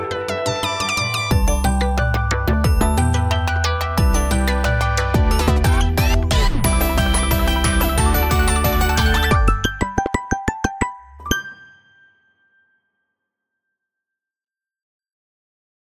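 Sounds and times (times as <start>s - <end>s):
Google Pixel phone ringtone: 0.2s - 12.1s.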